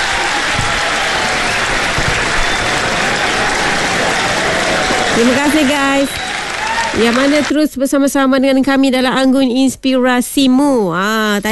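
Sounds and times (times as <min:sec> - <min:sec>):
audience applause: 0:00.0 - 0:07.6
speech: 0:05.2 - 0:06.2, 0:06.9 - 0:11.5.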